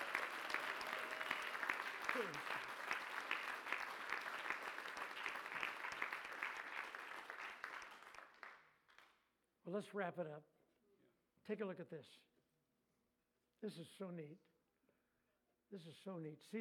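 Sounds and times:
audience clapping: 0:00.0 - 0:09.2
speech: 0:02.2 - 0:02.7, 0:09.7 - 0:10.6, 0:11.5 - 0:12.3, 0:13.6 - 0:14.5, 0:15.7 - 0:16.5.

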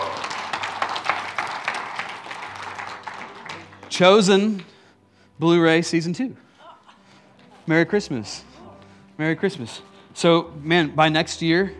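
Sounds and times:
audience applause: 0:00.0 - 0:04.0
speech: 0:04.0 - 0:04.7, 0:05.4 - 0:06.4, 0:07.7 - 0:08.5, 0:09.2 - 0:11.7.

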